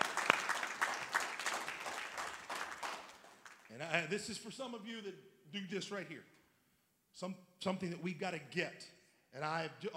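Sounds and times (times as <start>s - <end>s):
crowd clapping: 0.0s - 4.0s
speech: 3.8s - 6.4s, 7.2s - 9.9s.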